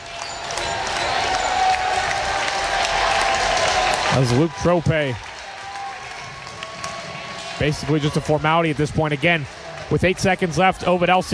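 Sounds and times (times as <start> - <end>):
high school basketball crowd cheering: 0.0 - 11.3
speech: 4.2 - 5.3, 7.6 - 11.3.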